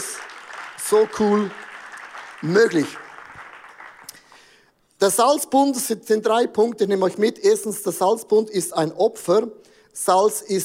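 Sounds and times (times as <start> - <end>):
audience applause: 0.0 - 4.5
speech: 0.9 - 1.6, 2.4 - 3.1, 5.0 - 10.6.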